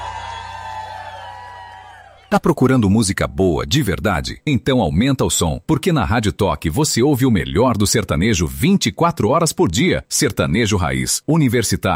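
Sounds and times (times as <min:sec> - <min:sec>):
crowd clapping: 0:00.0 - 0:02.4
speech: 0:02.3 - 0:11.9.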